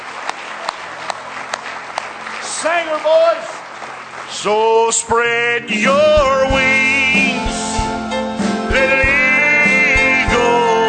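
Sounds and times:
congregation hand clapping in praise at a church service: 0.0 - 6.6
crowd noise: 0.0 - 10.8
speech: 2.6 - 7.6.

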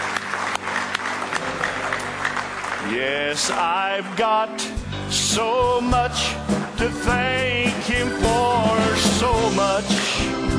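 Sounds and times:
crowd hand clapping: 0.0 - 4.8
speech: 2.9 - 10.5.

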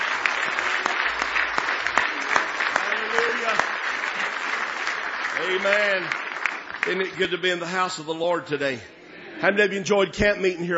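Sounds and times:
audience clapping hands in praise: 0.0 - 8.3
speech: 5.6 - 6.2, 6.8 - 10.7.

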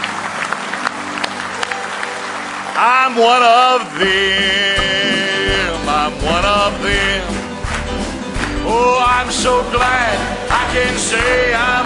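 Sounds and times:
hand clapping of praise during a church service: 0.0 - 2.2, 4.8 - 11.8
speech: 2.8 - 4.7, 8.7 - 11.8.

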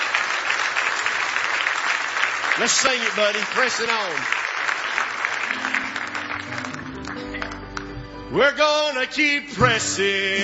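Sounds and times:
crowd clapping hands in praise: 0.0 - 8.2
speech: 2.6 - 4.4, 8.3 - 10.4.

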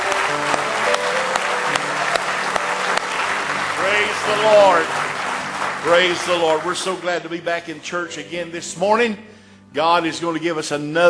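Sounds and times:
audience applause, hand clapping: 0.0 - 7.5
speech: 4.0 - 5.0, 5.8 - 11.0.

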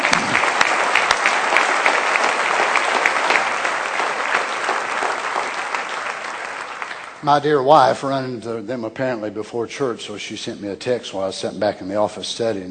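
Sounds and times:
church congregation applauding a newly engaged couple: 0.0 - 7.7
speech: 7.2 - 12.6.

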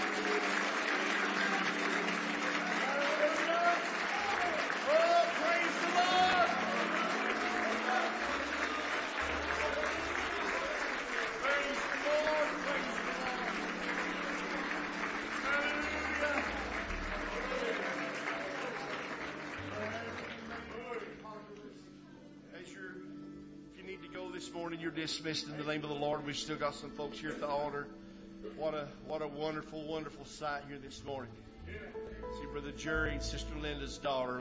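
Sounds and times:
audience hand clapping: 0.0 - 21.7
speech: 25.0 - 28.0, 28.6 - 34.4.

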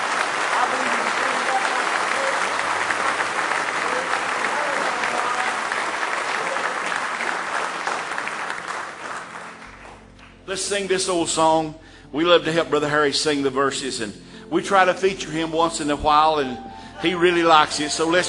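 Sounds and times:
audience applause, hand clapping: 0.0 - 10.5
speech: 10.5 - 18.2.

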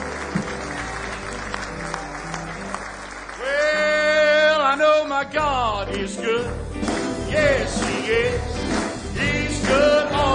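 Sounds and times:
audience hand clapping applause: 0.0 - 10.3
speech: 5.2 - 9.9.

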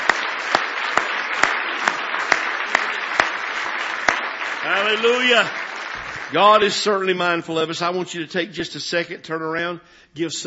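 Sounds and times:
audience hand clapping: 0.0 - 7.2
speech: 4.6 - 5.6, 6.3 - 10.4.

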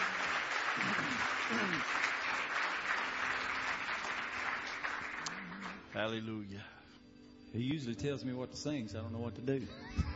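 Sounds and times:
hand clapping: 0.0 - 5.9
speech: 0.8 - 2.1, 6.0 - 6.8, 7.5 - 10.1.

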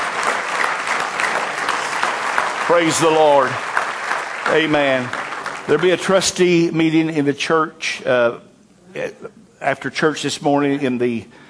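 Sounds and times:
church congregation clapping hands in praise: 0.0 - 7.2
speech: 2.7 - 3.7, 4.4 - 11.4.

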